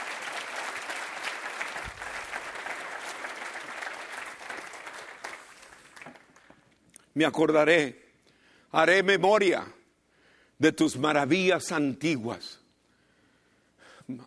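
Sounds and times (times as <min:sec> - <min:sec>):
applause: 0:00.0 - 0:06.8
speech: 0:07.2 - 0:08.0, 0:08.7 - 0:09.8, 0:10.6 - 0:12.6, 0:14.1 - 0:14.2.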